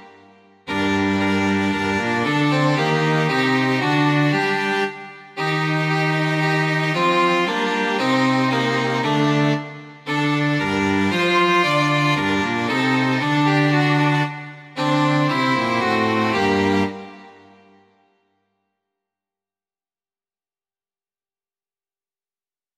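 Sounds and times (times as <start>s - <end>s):
string quartet: 0.0s - 17.8s.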